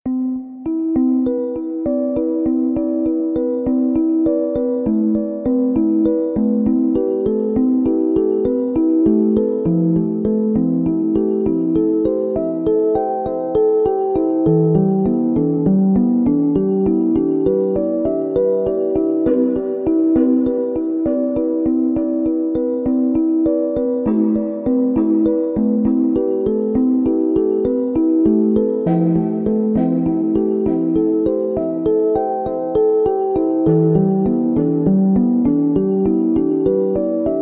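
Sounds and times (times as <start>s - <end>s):
relaxing music at 432 Hz: 0.1s - 37.4s.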